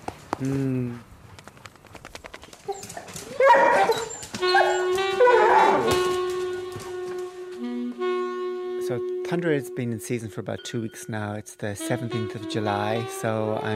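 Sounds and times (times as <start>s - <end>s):
speech: 0.4s - 1.1s, 8.9s - 13.7s
dogs whimpering and yipping: 2.7s - 6.0s.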